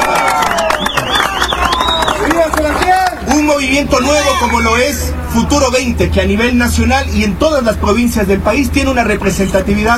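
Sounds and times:
crowd applauding: 0.0 - 3.4
voices cheering: 0.0 - 5.3
wavering whistle: 0.5 - 2.2
speech: 3.6 - 9.9.

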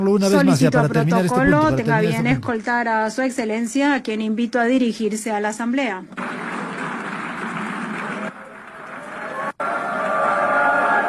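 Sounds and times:
speech: 0.0 - 6.5
large crowd booing: 6.2 - 11.0.

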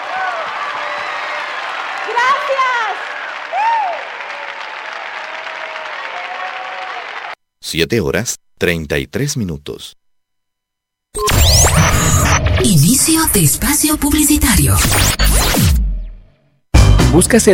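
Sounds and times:
audience applause: 0.0 - 7.4
speech: 2.1 - 4.2, 7.7 - 10.0, 11.1 - 15.8, 17.1 - 17.5.

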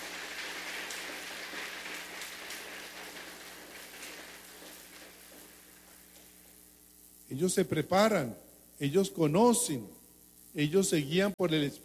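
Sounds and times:
audience applauding: 0.0 - 6.0
speech: 7.3 - 10.0, 10.6 - 11.8.

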